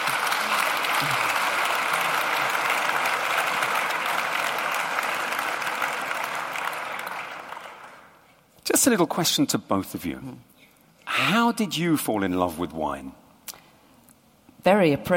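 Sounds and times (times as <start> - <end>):
audience applause: 0.0 - 8.2
speech: 8.7 - 10.5, 11.3 - 13.2, 14.6 - 15.1.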